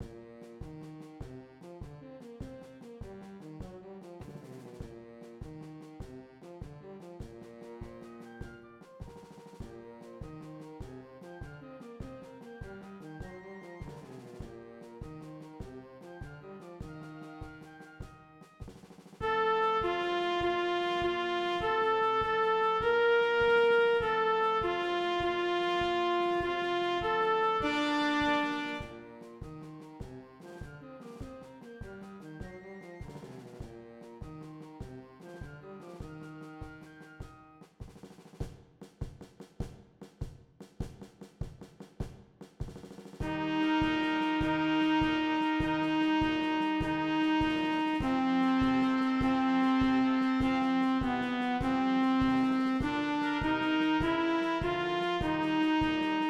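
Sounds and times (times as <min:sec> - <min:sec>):
clarinet: 0:00.0 - 0:37.7, 0:43.2 - 0:56.2
trumpet: 0:00.0 - 0:38.4, 0:43.0 - 0:56.2.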